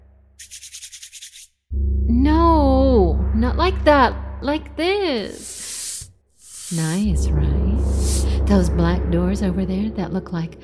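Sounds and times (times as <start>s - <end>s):
hand rubbing a smooth stone desk: 0.4s - 1.5s, 5.3s - 7.1s, 7.8s - 8.3s
low steady hum: 1.7s - 5.6s, 6.6s - 10.6s
speech: 3.5s - 5.5s, 6.7s - 7.6s, 8.5s - 10.6s.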